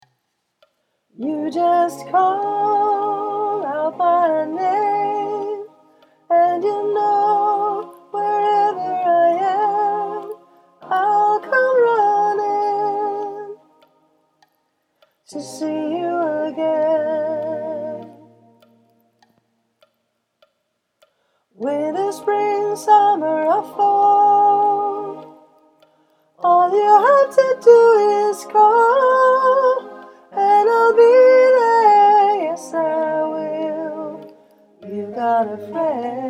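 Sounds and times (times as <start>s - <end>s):
soprano voice: 1.2s - 13.7s, 15.3s - 18.4s, 21.6s - 25.6s, 26.4s - 36.2s.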